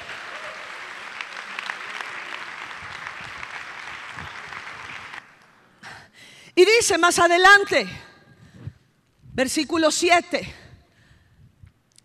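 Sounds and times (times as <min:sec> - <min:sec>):
audience applause: 0:00.0 - 0:05.7
speech: 0:06.6 - 0:08.1, 0:09.4 - 0:10.6.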